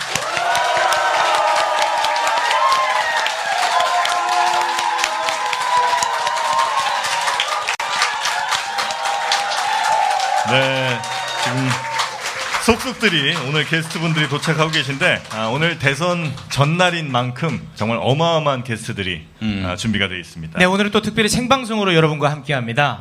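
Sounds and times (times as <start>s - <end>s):
crowd cheering with excited voices and whoops: 0.0s - 12.6s
crowd applauding: 0.0s - 17.6s
speech: 12.8s - 22.9s.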